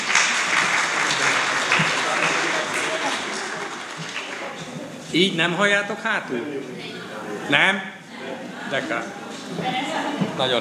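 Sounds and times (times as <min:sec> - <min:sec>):
audience applause: 0:00.0 - 0:05.0
speech: 0:05.2 - 0:08.0, 0:08.7 - 0:10.5.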